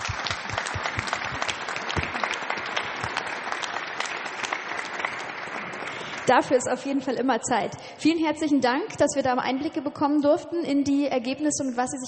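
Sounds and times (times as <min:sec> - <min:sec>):
audience applause: 0:00.0 - 0:06.4
speech: 0:06.3 - 0:12.0.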